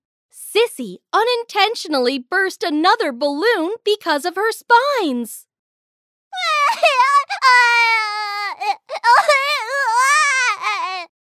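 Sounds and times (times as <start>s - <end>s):
speech: 0.7s - 5.5s, 6.4s - 11.1s
child crying out loud: 6.4s - 11.1s.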